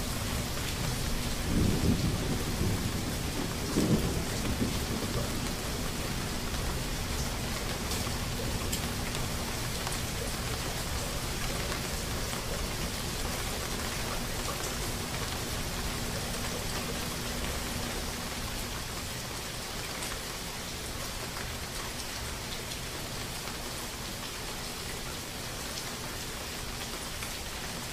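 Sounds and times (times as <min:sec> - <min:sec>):
rain falling on a surface: 0:00.0 - 0:27.9
thunder rumbles: 0:00.5 - 0:07.2.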